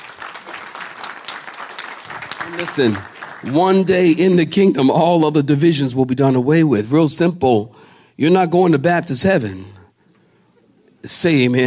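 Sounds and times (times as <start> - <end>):
audience clapping hands: 0.0 - 4.7
speech: 2.4 - 9.8, 11.0 - 11.6.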